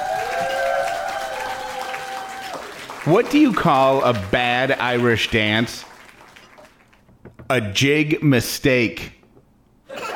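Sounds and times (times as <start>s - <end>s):
audience applause at a comedy club welcoming a comedian: 0.0s - 7.1s
speech: 3.0s - 5.9s, 7.5s - 9.2s.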